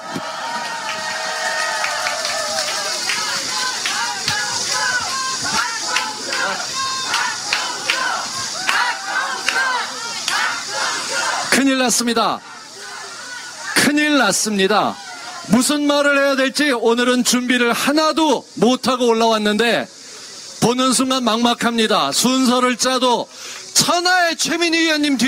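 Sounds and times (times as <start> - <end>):
audience applause: 0.0 - 11.7
speech: 11.6 - 12.5, 14.1 - 20.0, 20.7 - 25.2.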